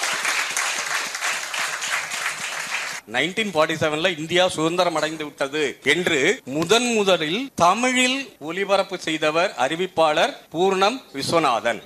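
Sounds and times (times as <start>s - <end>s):
audience clapping hands: 0.0s - 3.0s
speech: 3.1s - 11.8s.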